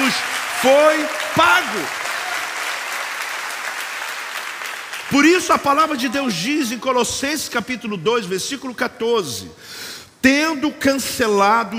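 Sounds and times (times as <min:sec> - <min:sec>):
audience applause: 0:00.0 - 0:06.0
speech: 0:00.6 - 0:02.0, 0:05.1 - 0:11.7.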